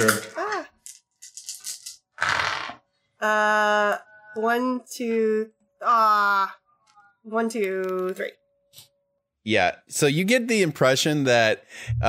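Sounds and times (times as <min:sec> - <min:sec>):
speech: 0:00.0 - 0:00.3, 0:03.2 - 0:06.6, 0:07.2 - 0:12.0
dice rolling: 0:00.0 - 0:02.8.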